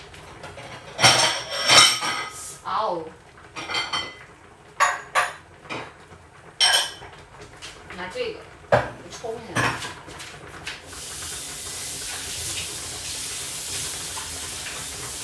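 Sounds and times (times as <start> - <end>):
bowls and dishes clinking: 0.4 - 2.4, 3.6 - 4.2, 4.8 - 5.9, 6.6 - 7.0
speech: 2.8 - 3.2.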